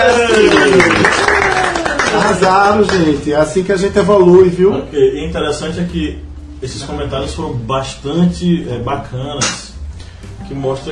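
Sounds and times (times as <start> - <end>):
group applauding: 0.0 - 3.3
speech: 2.3 - 9.7, 10.5 - 10.8.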